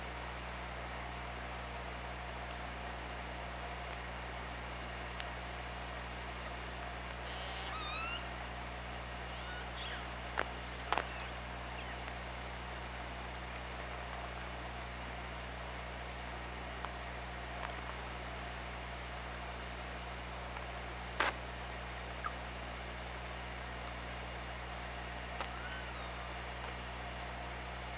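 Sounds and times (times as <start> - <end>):
low hum and hiss: 0.0 - 27.9
killer whale squeals: 7.3 - 8.3, 9.3 - 10.0, 25.5 - 26.2.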